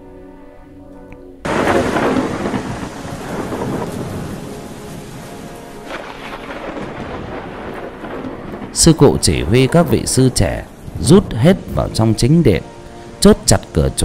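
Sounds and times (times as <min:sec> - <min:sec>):
thunder: 0:01.5 - 0:12.0
heavy rain: 0:01.5 - 0:14.0
speech: 0:08.8 - 0:14.0.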